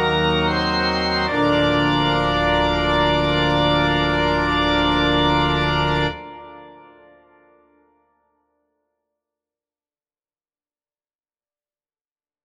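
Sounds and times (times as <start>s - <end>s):
organ: 0.0s - 7.8s.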